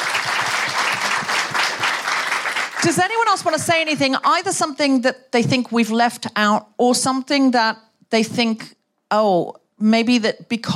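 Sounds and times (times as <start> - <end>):
audience applause: 0.0 - 2.9
speech: 2.8 - 10.7.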